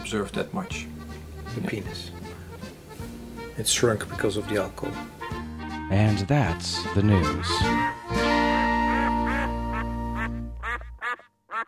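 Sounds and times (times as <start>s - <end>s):
speech: 0.1s - 1.0s, 1.6s - 2.3s, 3.6s - 5.2s, 5.9s - 8.3s
duck quacking: 7.0s - 11.6s.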